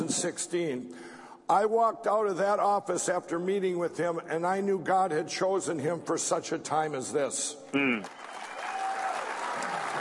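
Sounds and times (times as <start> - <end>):
speech: 0.1 - 8.2
audience clapping: 8.0 - 9.9.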